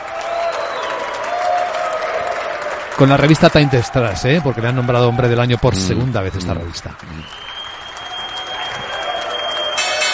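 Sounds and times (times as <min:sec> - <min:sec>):
audience applause: 0:00.0 - 0:10.1
speech: 0:03.0 - 0:07.4.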